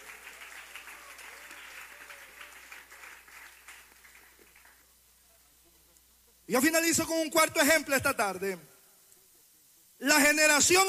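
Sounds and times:
audience applauding: 0.0 - 5.0
speech: 6.5 - 8.7, 10.0 - 10.8.

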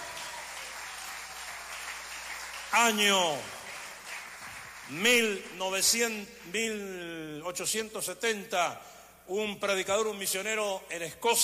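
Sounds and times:
audience applause: 0.0 - 5.5
speech: 2.7 - 3.6, 4.9 - 11.4.

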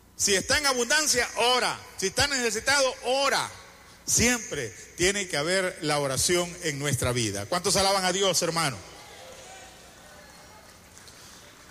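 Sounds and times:
speech: 0.2 - 9.0
audience clapping hands: 9.5 - 11.7.

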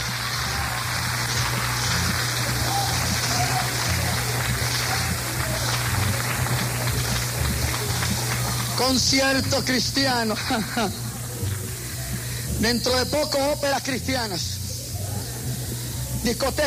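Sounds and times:
audience applauding loudly: 0.0 - 11.9
low constant hum: 0.0 - 16.6
speech: 8.8 - 11.0, 12.6 - 14.6, 16.2 - 16.6.

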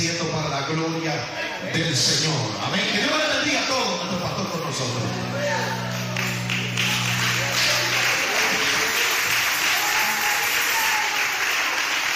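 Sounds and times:
speech: 0.7 - 6.0
audience applauding: 5.6 - 12.1.

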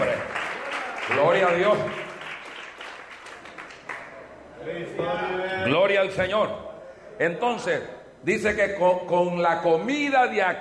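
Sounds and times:
crowd applauding: 0.0 - 4.3
speech: 1.1 - 2.0, 4.7 - 10.5.

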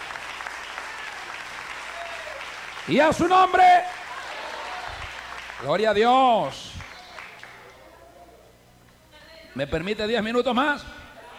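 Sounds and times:
audience applause: 0.0 - 7.7
speech: 2.8 - 4.0, 5.6 - 6.7, 9.6 - 10.9.

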